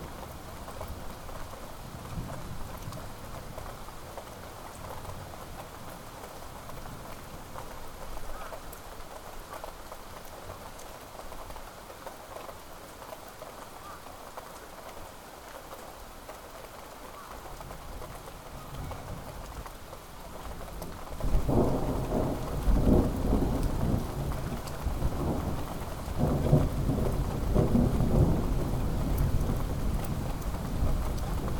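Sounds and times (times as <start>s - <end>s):
thunderstorm in Sannohe Japan: 21.2s - 31.5s.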